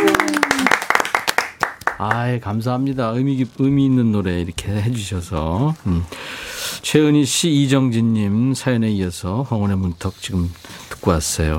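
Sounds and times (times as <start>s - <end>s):
audience applause: 0.0s - 2.2s
speech: 2.0s - 6.3s, 6.9s - 11.5s.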